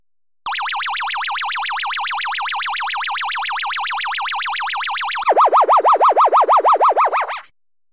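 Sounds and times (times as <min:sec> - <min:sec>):
Lunar Rescue arcade game rapid pulsing beeps: 0:00.5 - 0:07.5
Lunar Rescue arcade game warbling tone, Universal colour version on MAME: 0:05.0 - 0:07.5.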